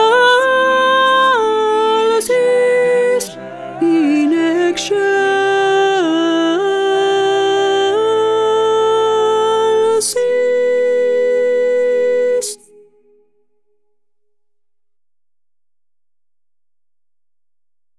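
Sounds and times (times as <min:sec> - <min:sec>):
first alto part: 0:00.0 - 0:13.1.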